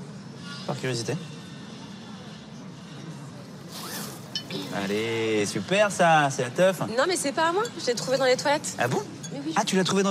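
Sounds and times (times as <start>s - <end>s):
speech: 0.7s - 1.4s, 4.8s - 10.0s
bag being unzipped and opened: 3.7s - 5.0s.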